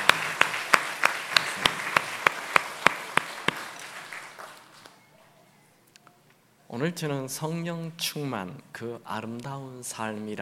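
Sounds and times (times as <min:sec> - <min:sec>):
audience applauding in a church: 0:00.0 - 0:05.0
speech: 0:06.7 - 0:10.4.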